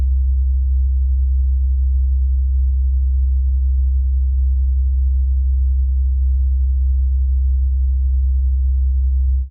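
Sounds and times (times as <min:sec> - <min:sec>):
65 Hz C3 tone: 0:00.0 - 0:09.4.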